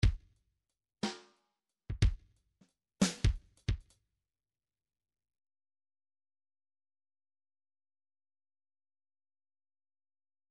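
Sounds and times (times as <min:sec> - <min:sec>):
MIDI file groove in 3/4 time: 0:03.0 - 0:03.9.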